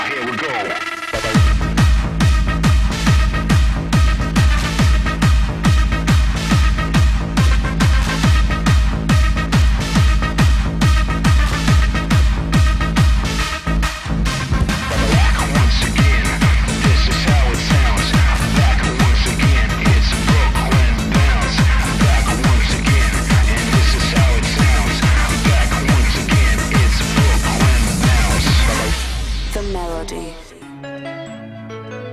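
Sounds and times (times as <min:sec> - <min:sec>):
bass beats: 0:00.0 - 0:30.6.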